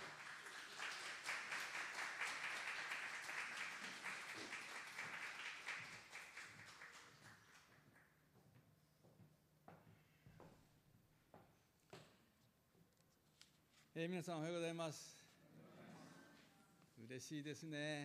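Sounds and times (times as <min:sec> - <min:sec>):
audience applause: 0:00.0 - 0:07.8
speech: 0:14.0 - 0:15.2, 0:17.0 - 0:18.0.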